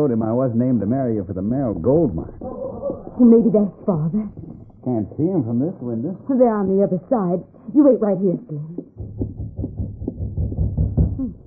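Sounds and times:
speech: 0:00.0 - 0:02.6, 0:03.2 - 0:08.8
knocking on a door: 0:08.8 - 0:11.4.

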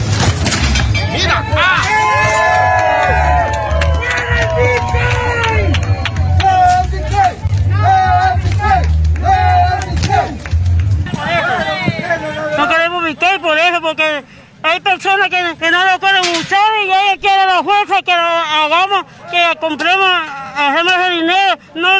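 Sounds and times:
steady low rumble: 0:00.0 - 0:12.2
protest crowd shouting and chanting: 0:00.8 - 0:14.5, 0:15.1 - 0:21.9
speech: 0:18.0 - 0:21.9.

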